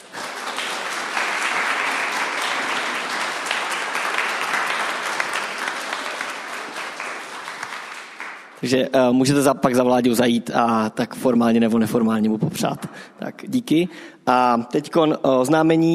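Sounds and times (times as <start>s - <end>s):
audience applause: 0.0s - 8.6s
speech: 8.6s - 15.9s.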